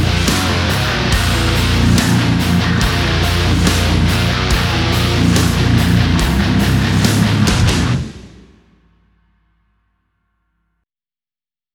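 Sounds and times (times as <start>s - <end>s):
high-gain guitar cabinets: 0.0s - 8.9s.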